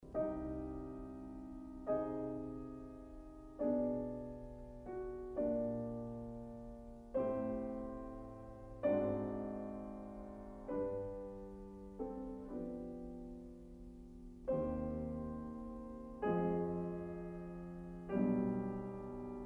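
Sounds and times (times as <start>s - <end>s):
prelude in C minor on piano: 0.0s - 19.4s.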